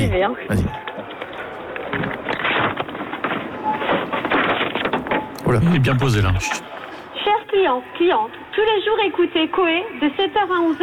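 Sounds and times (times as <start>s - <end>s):
speech: 0.0s - 0.9s, 5.5s - 6.7s, 7.6s - 10.8s
supermarket ambience: 0.0s - 7.7s.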